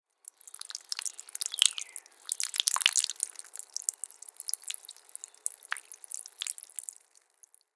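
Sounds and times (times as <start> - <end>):
person urinating outside in nature: 0.0 - 7.7.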